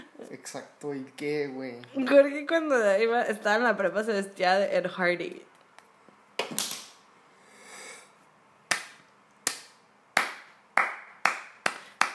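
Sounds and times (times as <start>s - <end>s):
speech: 0.3s - 5.5s
sharp hand claps: 8.7s - 12.1s.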